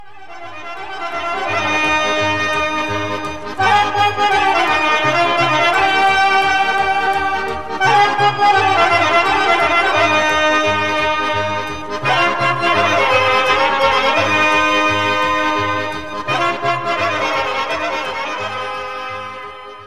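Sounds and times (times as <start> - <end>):
Bulgarian horo folk dance music: 0.0 - 19.8.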